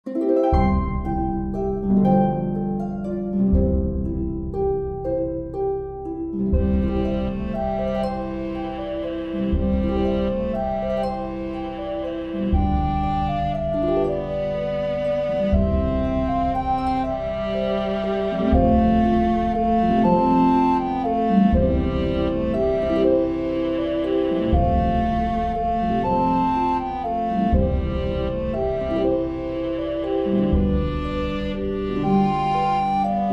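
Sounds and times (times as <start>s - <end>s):
viola melody: 0.0s - 33.3s.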